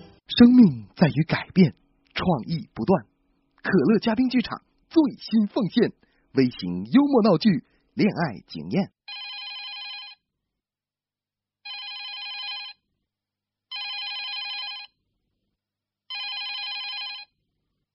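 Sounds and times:
speech: 0:00.4 - 0:09.0
telephone ringing: 0:09.1 - 0:10.2, 0:11.7 - 0:12.8, 0:13.7 - 0:15.0, 0:16.1 - 0:17.4.

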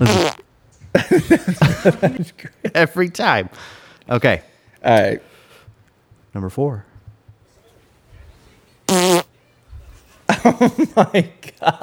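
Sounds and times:
fart: 0:00.0 - 0:00.5, 0:08.9 - 0:09.3
people laughing: 0:00.8 - 0:03.0, 0:09.8 - 0:11.8
speech: 0:01.3 - 0:05.3, 0:06.3 - 0:06.9, 0:10.4 - 0:11.8.

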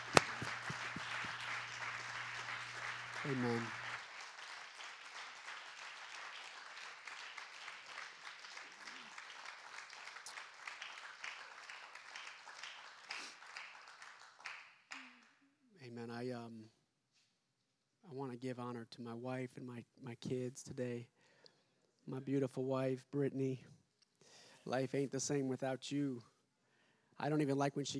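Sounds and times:
audience clapping: 0:00.0 - 0:15.2
speech: 0:03.2 - 0:03.8, 0:18.2 - 0:21.2, 0:22.1 - 0:23.8, 0:24.6 - 0:26.3, 0:27.2 - 0:27.9.

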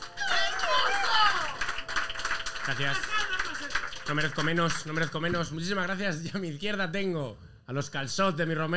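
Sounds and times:
audience applause: 0:00.0 - 0:05.8
speech: 0:02.7 - 0:03.3, 0:04.1 - 0:08.7.

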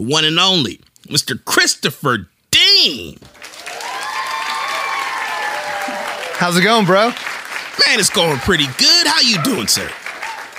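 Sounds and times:
speech: 0:00.0 - 0:03.4, 0:06.4 - 0:10.0
audience applause welcoming a podcast co-host: 0:03.3 - 0:10.5.

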